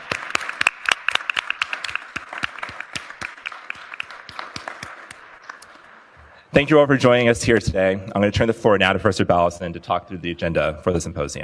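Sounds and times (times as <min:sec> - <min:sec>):
audience applause: 0:00.0 - 0:06.2
speech: 0:06.6 - 0:11.4.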